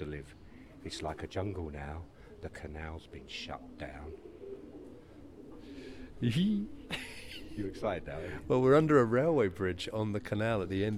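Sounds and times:
speech: 0.0s - 4.4s, 6.2s - 10.9s
pigeons cooing under a railway bridge: 0.0s - 10.9s
laughter: 6.8s - 8.5s.

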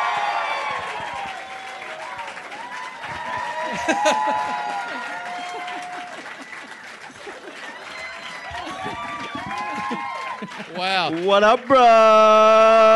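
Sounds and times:
audience whoops: 0.0s - 10.7s
live comedy-show audience applause: 0.0s - 12.9s
audience laughter: 3.6s - 10.8s
speech: 3.9s - 5.8s, 10.6s - 12.9s.

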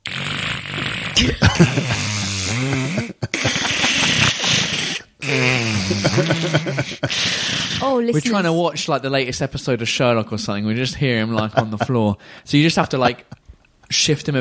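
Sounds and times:
vocal imitation of a cat snoring: 0.0s - 8.5s
speech: 1.2s - 3.1s, 6.2s - 14.3s
laughter: 1.2s - 4.7s, 5.7s - 7.4s, 11.1s - 13.4s.

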